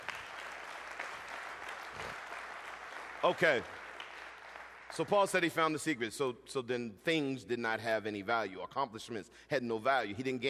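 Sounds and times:
audience clapping hands: 0:00.0 - 0:05.5
speech: 0:03.2 - 0:03.8, 0:04.9 - 0:10.4.

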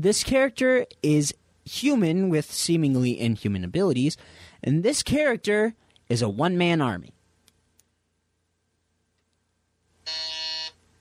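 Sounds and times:
speech: 0:00.0 - 0:07.2
game show buzzer: 0:10.0 - 0:10.8.

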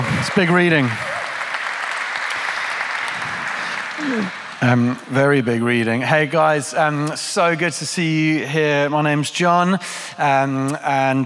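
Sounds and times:
audience applause: 0:00.0 - 0:05.1
speech: 0:00.2 - 0:01.1, 0:04.1 - 0:11.2.

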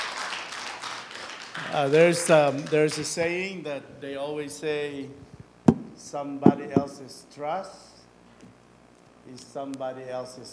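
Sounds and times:
crowd clapping: 0:00.0 - 0:03.2
speech: 0:01.7 - 0:05.3, 0:06.0 - 0:07.9, 0:09.3 - 0:10.5.

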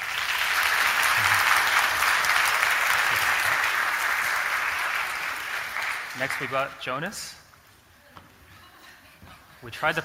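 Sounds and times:
audience clapping: 0:00.0 - 0:06.8
speech: 0:06.2 - 0:07.4, 0:09.6 - 0:10.0.

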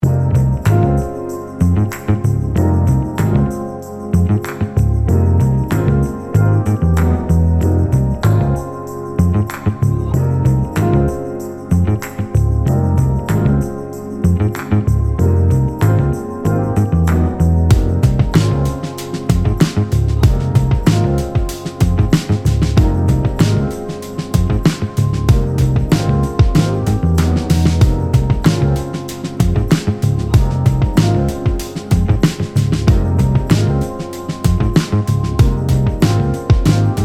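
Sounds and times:
gospel music loop: 0:00.0 - 0:37.0.

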